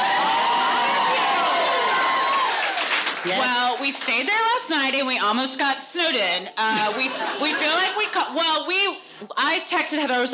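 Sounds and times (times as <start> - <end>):
audience applauding: 0.0 - 4.4
speech: 3.2 - 10.3.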